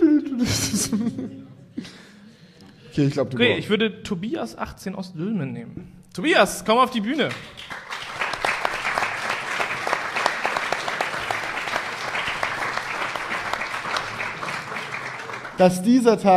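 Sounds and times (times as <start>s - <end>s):
laughter: 0.2s - 2.3s
speech: 3.0s - 7.6s, 15.6s - 16.3s
live audience applause: 7.1s - 16.0s.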